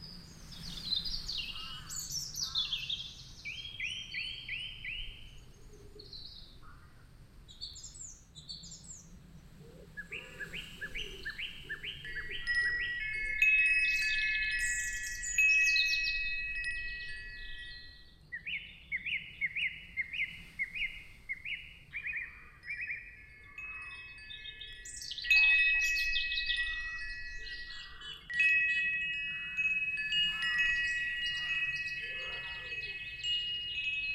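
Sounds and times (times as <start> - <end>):
wind chimes in a forest: 0.0 - 5.6, 10.0 - 34.1.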